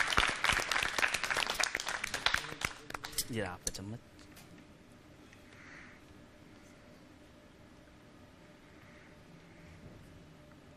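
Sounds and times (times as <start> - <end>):
audience applause welcoming a guest at a salad-tasting event: 0.0 - 3.2
speech: 3.3 - 4.1.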